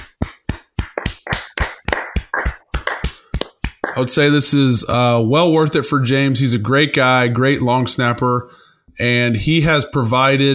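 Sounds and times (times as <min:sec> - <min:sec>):
hand claps: 0:00.0 - 0:04.3
speech: 0:04.0 - 0:10.5.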